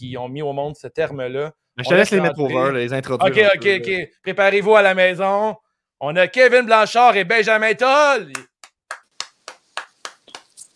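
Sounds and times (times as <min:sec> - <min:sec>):
speech: 0:00.0 - 0:08.5
hands clapping: 0:08.3 - 0:10.7.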